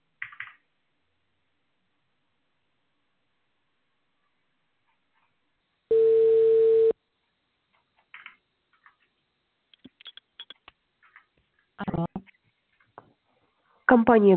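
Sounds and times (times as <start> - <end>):
telephone ringing tone from automated dialer: 5.9 - 7.0.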